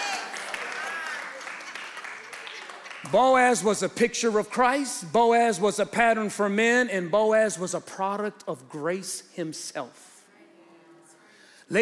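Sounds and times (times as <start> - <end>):
audience clapping: 0.0 - 3.7
speech: 3.0 - 10.1, 11.7 - 11.8.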